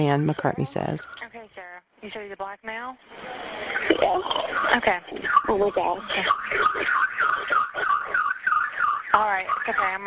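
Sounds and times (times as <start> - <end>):
speech: 0.0 - 7.0, 9.2 - 10.0
home alarm warbling: 3.4 - 10.0.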